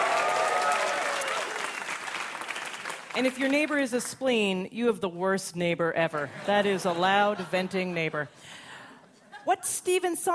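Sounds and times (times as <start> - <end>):
audience clapping hands: 0.0 - 4.1
speech: 3.2 - 8.6, 9.4 - 10.3.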